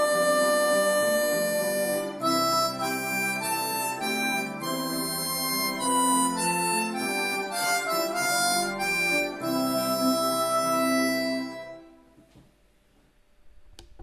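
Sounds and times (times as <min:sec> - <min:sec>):
harmonica playing a melody in C: 0:00.0 - 0:12.2.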